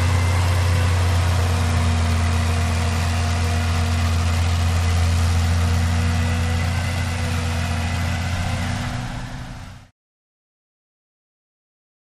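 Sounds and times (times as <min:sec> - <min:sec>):
bulldozer working: 0:00.0 - 0:09.9.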